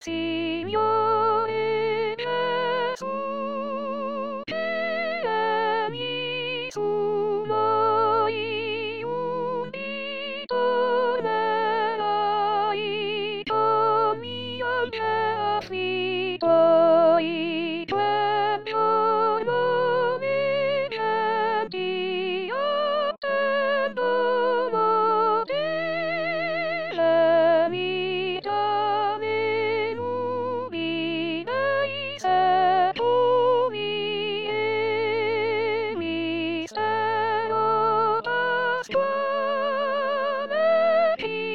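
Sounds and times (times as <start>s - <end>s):
sopranos singing: 0.0s - 41.5s.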